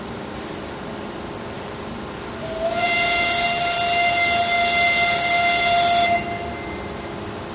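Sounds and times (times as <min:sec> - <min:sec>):
blast site warning whistle: 0:02.4 - 0:07.1.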